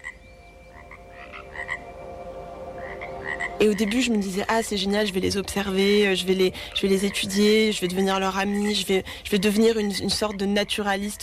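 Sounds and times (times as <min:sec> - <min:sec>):
frogs croaking: 0:00.0 - 0:11.2
speech: 0:03.6 - 0:11.2.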